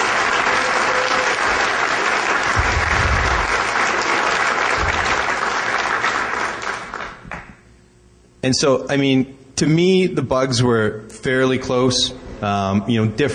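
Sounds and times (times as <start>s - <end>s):
audience applause for performers on stage at a live event: 0.0s - 7.5s
speech: 8.4s - 13.3s.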